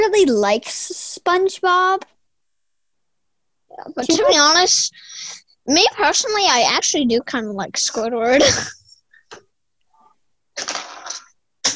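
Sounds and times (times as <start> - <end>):
speech: 0.1 - 2.1, 3.8 - 9.4
pencil dropped: 10.6 - 11.7.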